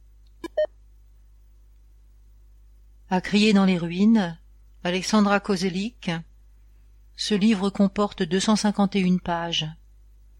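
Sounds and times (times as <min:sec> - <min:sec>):
quiet hum: 0:00.0 - 0:10.3
electronic keypad beeps on audio player: 0:00.4 - 0:00.7
speech: 0:03.1 - 0:06.3, 0:07.2 - 0:09.8.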